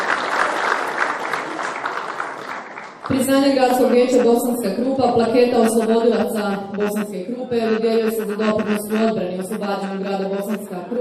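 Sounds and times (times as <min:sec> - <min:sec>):
applause at a Bosanska Krupa city council award ceremony: 0:00.0 - 0:03.9
speech: 0:03.1 - 0:11.0.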